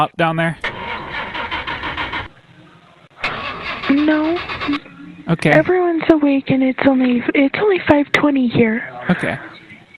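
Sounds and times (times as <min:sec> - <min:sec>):
speech: 0:00.0 - 0:00.7, 0:04.0 - 0:09.6
car engine starting: 0:00.6 - 0:07.8.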